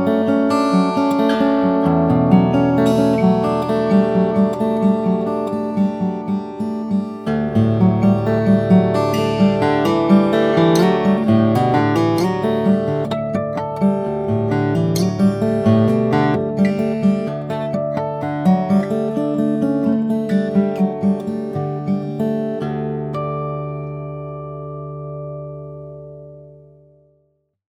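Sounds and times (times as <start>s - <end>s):
Lowden custom F50c ancient bog oak guitar: 0.0s - 27.4s.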